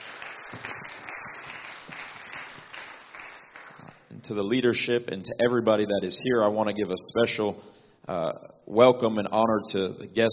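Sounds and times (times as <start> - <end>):
audience applauding: 0.0 - 4.1
speech: 4.3 - 10.3.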